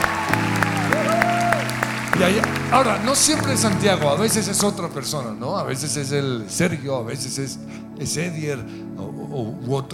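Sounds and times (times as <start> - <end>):
audience applause: 0.0 - 4.8
speech: 2.2 - 9.9.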